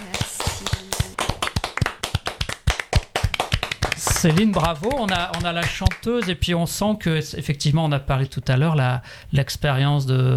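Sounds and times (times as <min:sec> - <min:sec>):
audience applauding: 0:00.0 - 0:06.3
speech: 0:04.2 - 0:10.3.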